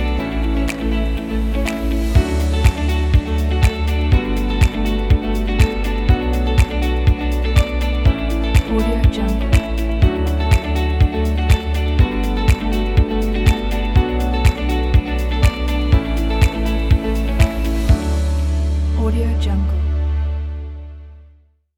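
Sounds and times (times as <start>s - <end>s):
corporate presentation music: 0.0s - 21.0s.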